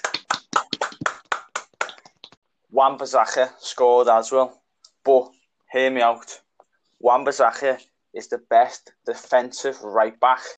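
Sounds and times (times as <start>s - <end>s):
small round of applause: 0.0s - 2.3s
speech: 2.8s - 6.4s, 7.0s - 10.5s.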